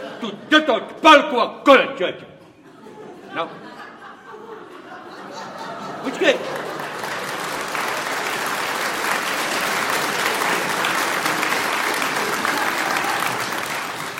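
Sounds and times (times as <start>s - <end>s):
laughter: 0.0s - 0.9s, 2.4s - 14.1s
speech: 0.2s - 2.3s, 3.4s - 3.8s, 6.0s - 6.6s
audience applause: 5.5s - 14.1s.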